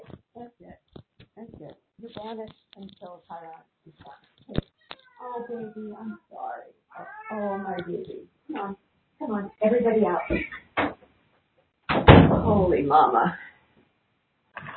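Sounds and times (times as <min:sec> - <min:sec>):
speech: 0:02.1 - 0:04.3, 0:05.3 - 0:10.6, 0:12.5 - 0:13.5
two cats meowing: 0:04.7 - 0:08.1, 0:10.1 - 0:10.7.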